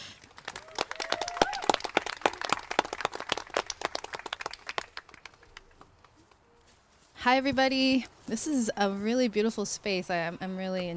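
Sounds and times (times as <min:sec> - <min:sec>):
audience applause welcoming a performer at a playwrights festival: 0:00.2 - 0:05.9
speech: 0:07.2 - 0:10.9.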